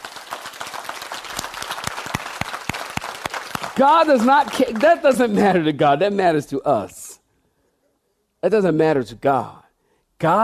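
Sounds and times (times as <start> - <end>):
audience clapping hands: 0.0 - 5.7
speech: 3.8 - 7.0, 8.4 - 9.6, 10.2 - 10.4.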